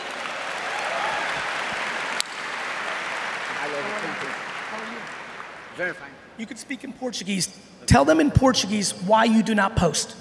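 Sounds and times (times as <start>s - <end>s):
audience applause: 0.0s - 5.8s
speech: 5.8s - 10.1s.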